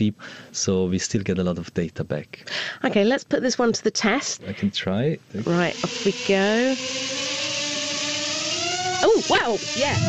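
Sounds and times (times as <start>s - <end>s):
speech: 0.0s - 7.2s, 9.1s - 10.0s
small drone buzzing: 5.4s - 10.0s.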